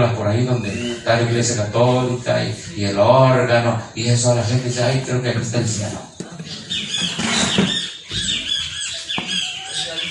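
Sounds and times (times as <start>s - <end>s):
birds singing: 0.0s - 3.3s, 5.7s - 10.0s
speech: 0.0s - 7.1s.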